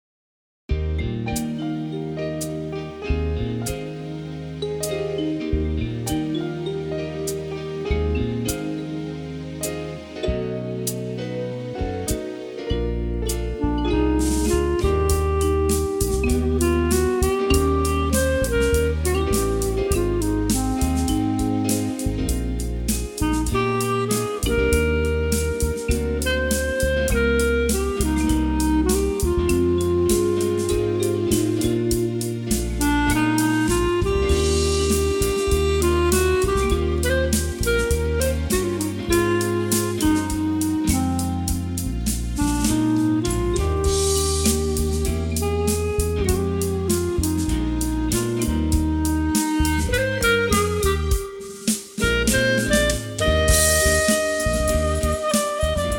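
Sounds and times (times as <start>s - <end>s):
clarinet: 1.5s - 55.9s.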